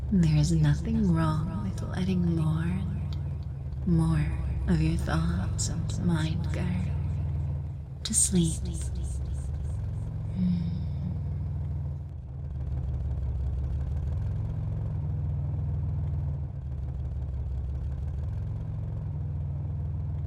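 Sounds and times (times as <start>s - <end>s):
faint higher tones: 0.0s - 12.0s
car engine droning inside a moving vehicle: 0.0s - 20.2s
speech: 0.1s - 2.9s, 3.9s - 7.0s, 8.1s - 9.2s, 10.4s - 10.8s.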